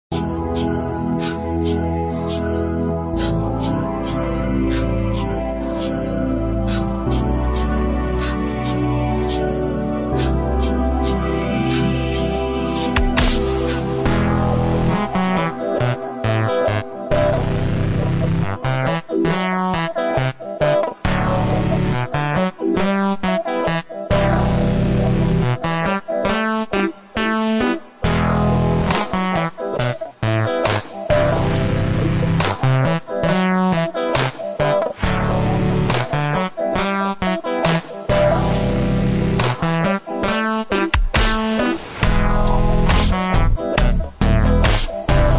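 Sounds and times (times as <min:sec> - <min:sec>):
funky piano: 0:00.1 - 0:45.3.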